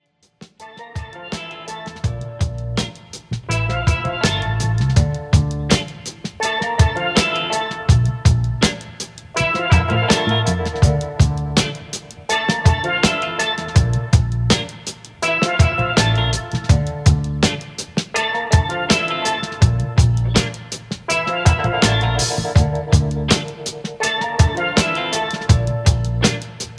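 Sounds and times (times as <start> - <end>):
steelband playing: 3.5 - 5.7, 6.4 - 8.6, 9.4 - 17.6, 18.2 - 26.3.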